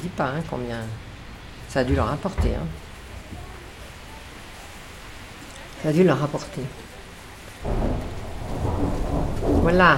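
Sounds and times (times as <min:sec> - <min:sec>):
speech: 0:00.0 - 0:01.1, 0:01.7 - 0:03.4, 0:05.8 - 0:06.9, 0:07.6 - 0:08.1, 0:09.6 - 0:09.9
heavy rain: 0:00.0 - 0:09.9
deep rumble of thunder: 0:01.0 - 0:05.4, 0:07.6 - 0:09.9.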